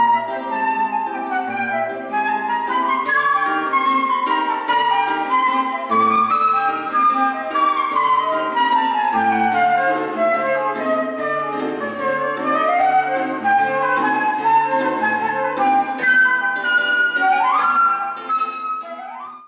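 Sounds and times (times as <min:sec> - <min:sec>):
flute reference: 0:00.0 - 0:19.4
guitar playing: 0:00.0 - 0:19.4.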